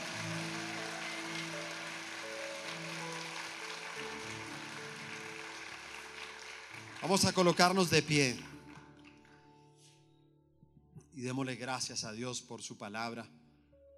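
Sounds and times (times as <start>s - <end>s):
audience applause: 0.0s - 9.4s
speech: 7.0s - 8.5s, 11.2s - 13.4s.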